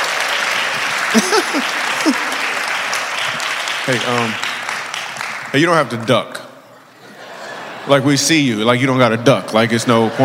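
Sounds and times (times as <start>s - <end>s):
audience applause: 0.0s - 5.9s
laughter: 0.6s - 3.2s, 6.8s - 8.4s, 9.3s - 10.2s
speech: 1.1s - 2.4s, 3.9s - 4.5s, 5.5s - 6.4s, 7.9s - 10.2s.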